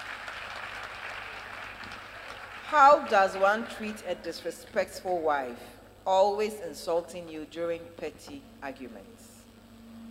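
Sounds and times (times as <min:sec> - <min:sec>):
crowd clapping: 0:00.0 - 0:04.1
speech: 0:02.7 - 0:09.2.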